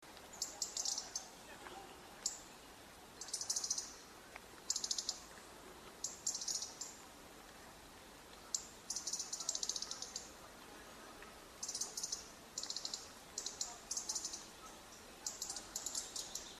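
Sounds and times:
soft background hiss: 0.0s - 16.5s
European robin ticking calls: 0.2s - 1.4s, 2.2s - 7.0s, 8.3s - 10.4s, 11.6s - 16.5s.

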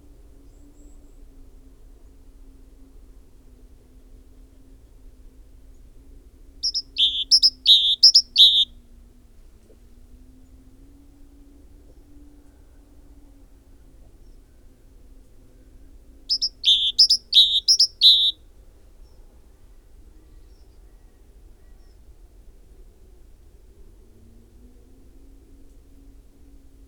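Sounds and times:
great tit phrases: 6.6s - 8.7s, 16.3s - 18.3s.

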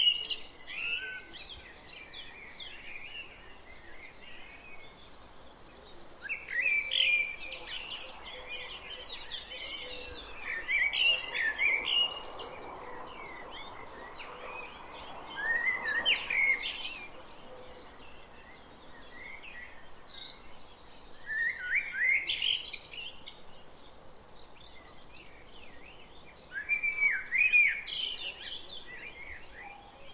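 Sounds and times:
Common blackbird fluty warbled phrases: 0.0s - 30.1s.

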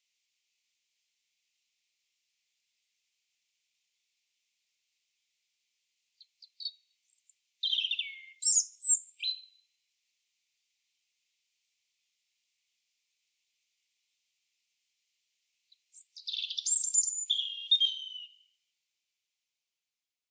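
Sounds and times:
European robin singing: 6.2s - 9.6s, 15.9s - 18.5s.

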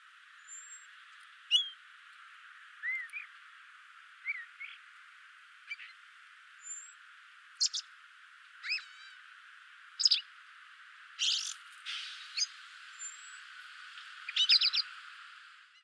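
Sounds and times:
common blackbird calling: 1.5s - 1.8s, 2.8s - 3.4s, 4.2s - 4.8s, 5.6s - 6.0s, 7.6s - 7.9s, 8.6s - 9.3s, 10.0s - 10.3s, 11.2s - 13.4s, 14.2s - 14.9s.

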